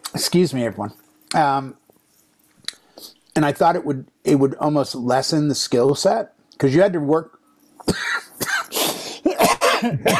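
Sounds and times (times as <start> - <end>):
speech: 0.2 - 1.8, 3.0 - 8.2, 9.8 - 10.1
person coughing and choking: 7.8 - 10.1.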